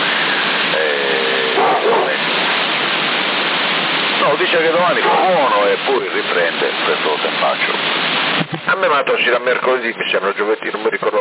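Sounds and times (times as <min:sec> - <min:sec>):
steady hiss: 0:00.0 - 0:11.1
dog barking and yelping in a garage: 0:01.6 - 0:02.2, 0:05.0 - 0:05.3
speech: 0:04.3 - 0:11.1.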